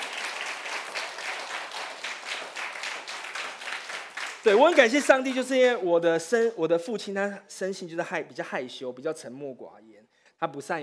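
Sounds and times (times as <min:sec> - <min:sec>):
audience applause: 0:00.0 - 0:05.1
speech: 0:04.4 - 0:10.8.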